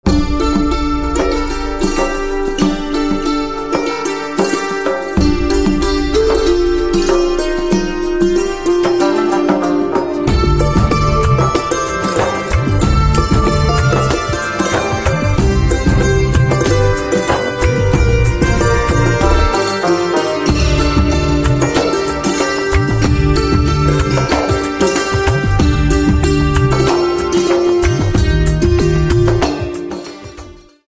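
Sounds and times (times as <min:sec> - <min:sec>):
santoor instrumental ringtone: 0:00.1 - 0:30.3.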